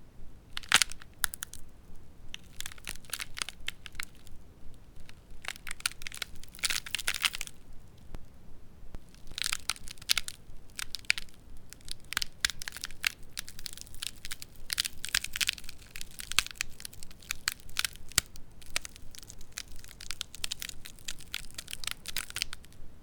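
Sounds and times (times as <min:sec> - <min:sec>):
bone fire crackling: 0:00.0 - 0:23.0
ice breaking, crackling and splintering: 0:02.4 - 0:04.3, 0:05.0 - 0:07.5, 0:09.1 - 0:22.6.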